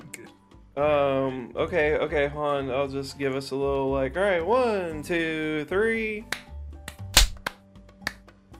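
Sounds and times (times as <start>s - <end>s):
speech: 0.8s - 6.4s
hand claps: 6.3s - 8.4s.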